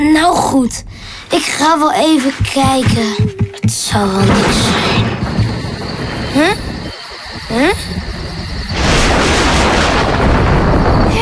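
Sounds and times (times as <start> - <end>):
speech: 0.0 - 5.2, 6.3 - 6.7, 7.5 - 8.0
thunder claps: 2.2 - 11.1.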